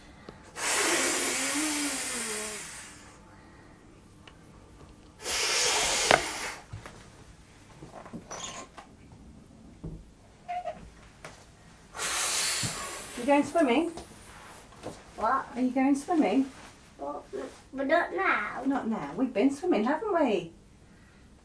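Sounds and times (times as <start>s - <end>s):
inflatable swimming armbands being blown up through the valve: 0.6s - 3.2s, 5.2s - 6.7s, 12.0s - 13.2s
small squeaks of the armbands' plastic: 8.3s - 8.7s
speech: 13.3s - 14.0s, 15.2s - 16.6s, 17.3s - 20.6s.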